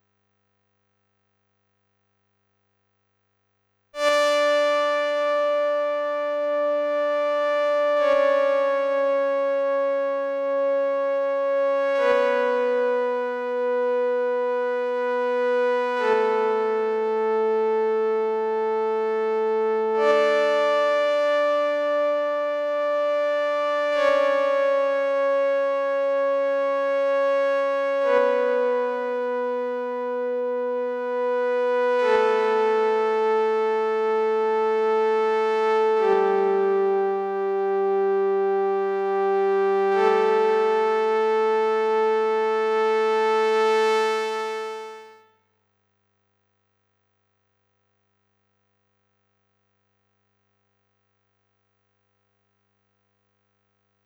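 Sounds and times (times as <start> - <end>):
synth: 4.0 - 44.0.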